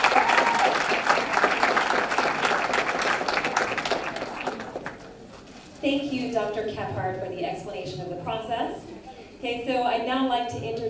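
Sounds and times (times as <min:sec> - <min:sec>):
audience applause: 0:00.0 - 0:05.1
speech: 0:05.9 - 0:10.8.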